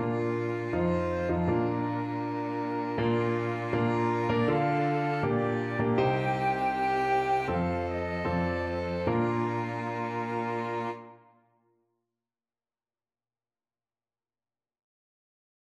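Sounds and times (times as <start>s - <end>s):
music piece: 0.0s - 11.4s.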